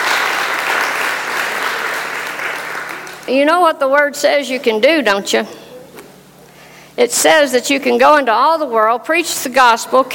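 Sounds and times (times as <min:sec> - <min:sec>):
audience applause: 0:00.0 - 0:03.3
speech: 0:03.3 - 0:05.6, 0:07.0 - 0:10.1.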